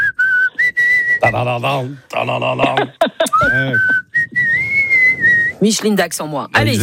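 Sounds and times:
person whistling a tune: 0:00.0 - 0:01.6, 0:03.2 - 0:05.6
sung vocal sounds: 0:01.2 - 0:03.8
speech: 0:01.2 - 0:04.0, 0:05.6 - 0:06.8
laughter: 0:02.4 - 0:04.0.

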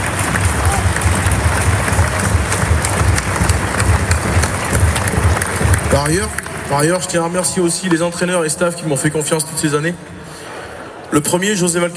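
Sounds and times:
audience applause: 0:00.0 - 0:07.8
speech: 0:06.1 - 0:10.2, 0:11.1 - 0:11.9.

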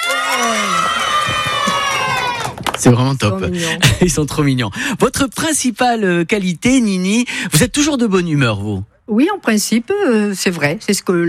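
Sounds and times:
crowd of children in audience shouting and cheering: 0:00.0 - 0:02.8
speech: 0:02.9 - 0:11.2.

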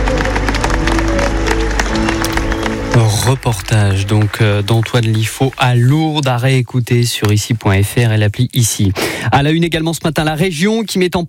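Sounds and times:
family applauding: 0:00.0 - 0:07.0
speech: 0:03.3 - 0:11.2.

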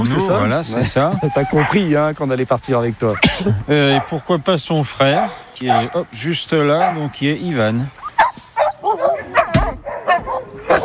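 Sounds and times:
speech: 0:00.0 - 0:08.0
dogs barking and yipping in enclosure: 0:01.0 - 0:01.9, 0:03.8 - 0:04.3, 0:05.0 - 0:10.8.

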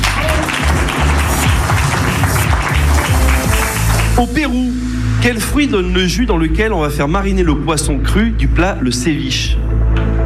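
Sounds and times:
crowd applauding: 0:00.0 - 0:04.3
speech: 0:04.2 - 0:09.8.

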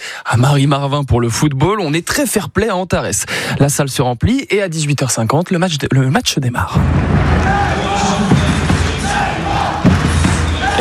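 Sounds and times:
speech: 0:00.2 - 0:08.3
Le Mans basketball supporters chanting in the Antarès arena: 0:07.2 - 0:10.8.

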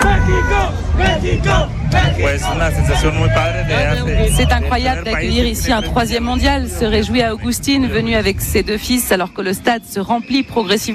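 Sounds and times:
football supporters shouting: 0:00.0 - 0:06.8
excited football supporters outside a stadium in Mexico City: 0:00.0 - 0:10.9
speech: 0:01.6 - 0:10.9.

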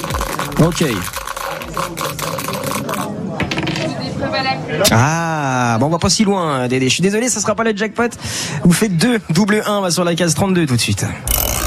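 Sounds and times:
dice being thrown: 0:00.0 - 0:03.9
speech: 0:00.6 - 0:03.1, 0:03.8 - 0:11.6.

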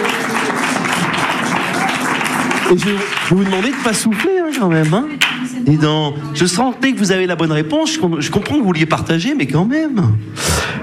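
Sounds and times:
outdoor audience applauding at a public event: 0:00.0 - 0:05.5
speech: 0:02.7 - 0:10.8.

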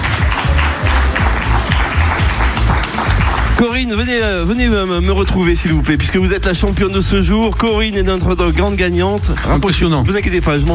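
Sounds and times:
audience applause: 0:00.0 - 0:04.0
low-pitched rhythmic musical beat: 0:00.0 - 0:10.7
speech: 0:03.6 - 0:10.7.

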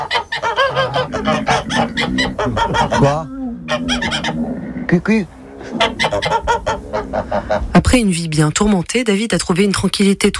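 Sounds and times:
fowl cackling and honking on a rural farm garden: 0:00.0 - 0:04.6, 0:05.6 - 0:07.8
speech: 0:02.0 - 0:10.3.

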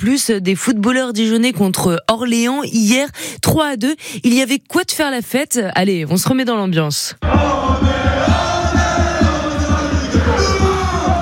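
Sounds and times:
speech: 0:00.0 - 0:08.5
football supporters chanting: 0:07.2 - 0:11.2.

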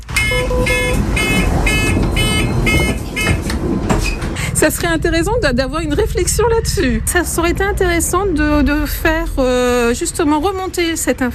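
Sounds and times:
bus warning beep: 0:00.2 - 0:03.4
speech: 0:04.6 - 0:11.3.

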